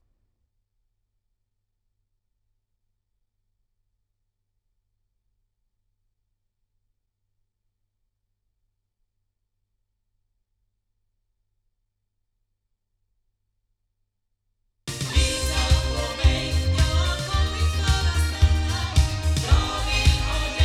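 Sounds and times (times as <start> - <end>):
loudspeakers: 14.9 - 20.6.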